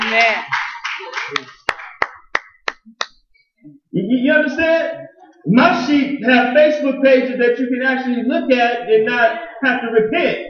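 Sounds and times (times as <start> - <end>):
audience clapping: 0.0 - 3.1
speech: 0.1 - 0.6, 4.0 - 10.4.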